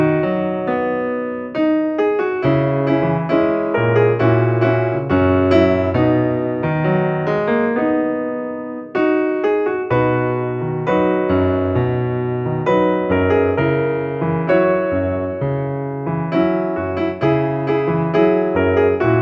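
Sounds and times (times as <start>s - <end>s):
solo piano: 0.0s - 19.2s.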